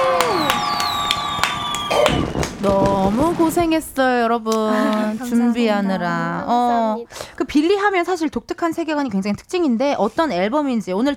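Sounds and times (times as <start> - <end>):
studio audience clapping: 0.0 - 3.6
speech: 2.6 - 11.1.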